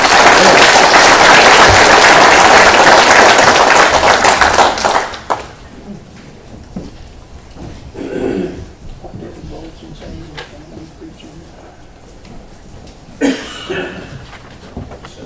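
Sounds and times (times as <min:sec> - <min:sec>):
audience applause welcoming a speaker: 0:00.0 - 0:05.6.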